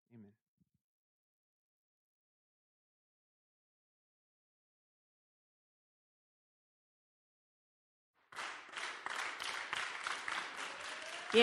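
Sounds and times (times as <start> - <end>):
group of people clapping together: 8.2 - 11.4.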